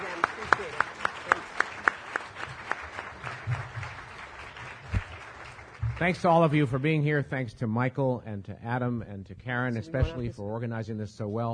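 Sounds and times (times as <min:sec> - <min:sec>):
audience applause: 0:00.0 - 0:06.9
speech: 0:06.0 - 0:11.5.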